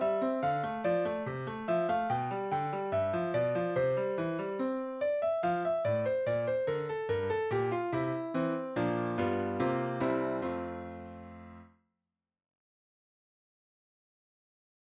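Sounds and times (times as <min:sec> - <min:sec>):
classical piece: 0:00.0 - 0:11.7.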